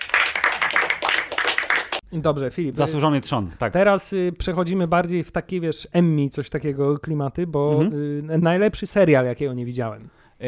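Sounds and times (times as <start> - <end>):
applause: 0.0 - 2.0
speech: 2.1 - 10.4.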